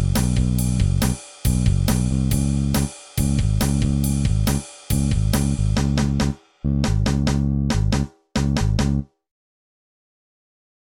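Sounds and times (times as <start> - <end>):
bass jam: 0.0 - 9.1.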